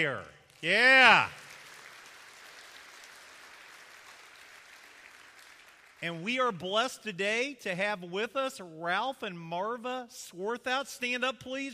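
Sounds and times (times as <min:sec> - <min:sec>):
speech: 0:00.0 - 0:01.4, 0:06.0 - 0:11.7
crowd applauding in a large room: 0:00.5 - 0:06.2.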